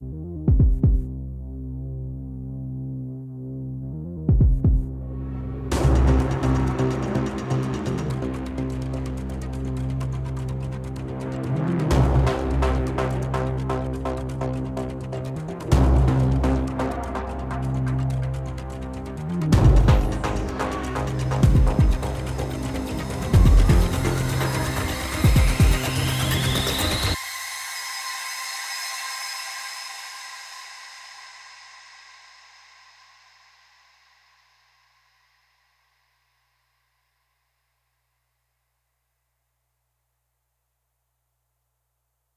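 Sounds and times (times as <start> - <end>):
fight dance music build: 4.3 - 27.2.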